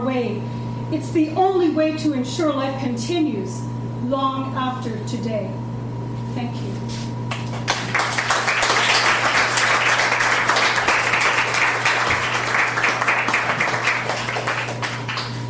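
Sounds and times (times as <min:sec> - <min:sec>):
speech: 0:00.1 - 0:05.6, 0:06.4 - 0:07.1
audience applause after a spoken poem about climate: 0:07.3 - 0:15.4.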